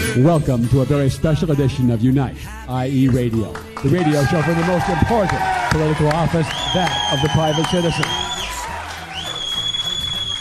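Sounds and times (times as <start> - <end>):
speech: 0.1 - 8.2
crowd of fans screaming and cheering: 3.8 - 10.3.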